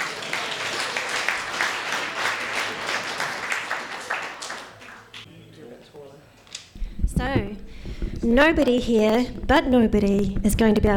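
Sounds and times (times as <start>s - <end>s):
audience clapping at the Eagle Hotel pub in Bluff, Southland: 0.0s - 5.3s
speech: 8.2s - 10.9s.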